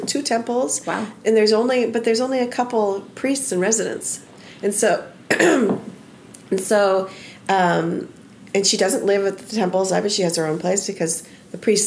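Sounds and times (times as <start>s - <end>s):
speech: 0.0s - 5.9s, 6.5s - 11.8s
person clearing throat with a tickle in the throat: 5.3s - 5.8s.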